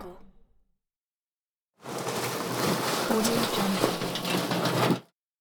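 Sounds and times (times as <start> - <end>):
trash can: 1.9 - 5.1.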